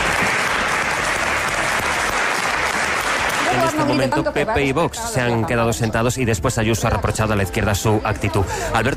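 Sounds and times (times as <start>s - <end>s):
applause from opposition benches in parliament in Madrid: 0.0s - 4.2s
speech: 3.6s - 8.9s.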